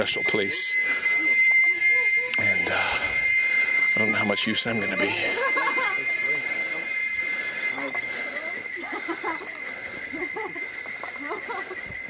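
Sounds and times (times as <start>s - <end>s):
speech: 0.0s - 1.2s, 4.0s - 5.8s
high whining or squealing tone: 0.0s - 12.0s
scattered voices and chatter in a village: 0.0s - 12.0s
laughter: 4.8s - 12.0s.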